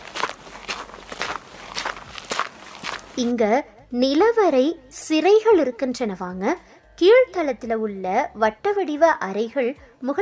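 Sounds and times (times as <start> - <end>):
footsteps of people walking at an unhurried pace: 0.0 - 3.4
speech: 3.2 - 10.1.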